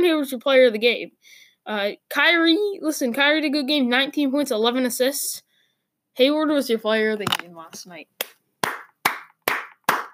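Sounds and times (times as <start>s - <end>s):
speech: 0.0s - 5.4s, 6.2s - 8.4s
hand clapping: 8.2s - 10.1s.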